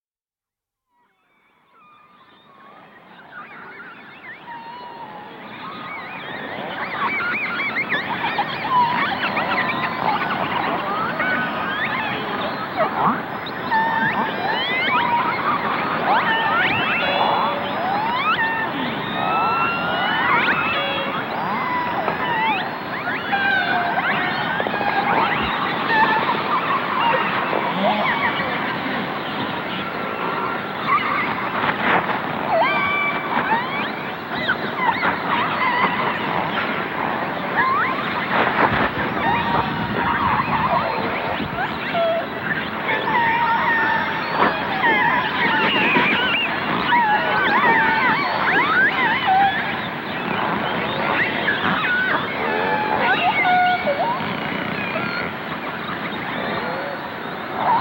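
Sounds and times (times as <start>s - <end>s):
whale calls: 1.6s - 57.7s.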